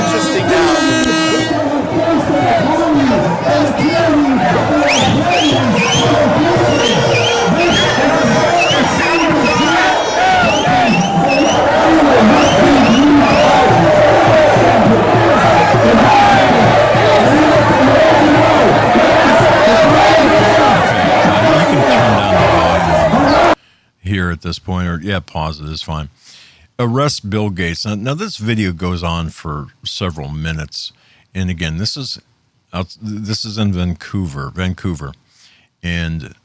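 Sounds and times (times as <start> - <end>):
protest crowd shouting and chanting: 0.0 - 23.6
speech: 24.4 - 26.2, 26.8 - 35.2, 35.8 - 36.4.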